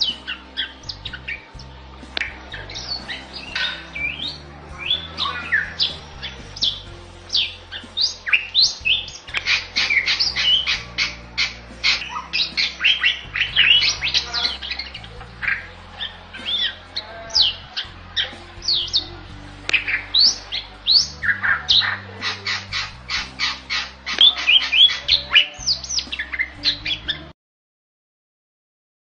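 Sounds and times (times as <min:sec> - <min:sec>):
Bali myna singing sharp calls and whistles: 0:00.0 - 0:27.4.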